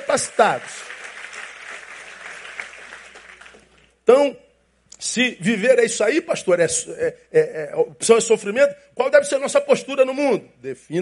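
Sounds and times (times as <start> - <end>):
audience applause: 0.0 - 3.9
speech: 0.1 - 1.0, 4.2 - 4.4, 5.2 - 11.0.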